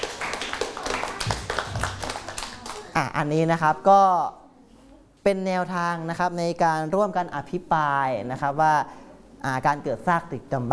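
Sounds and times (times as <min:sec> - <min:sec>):
classroom of students clapping for a classmate: 0:00.0 - 0:03.0
speech: 0:03.0 - 0:04.4, 0:05.2 - 0:10.7.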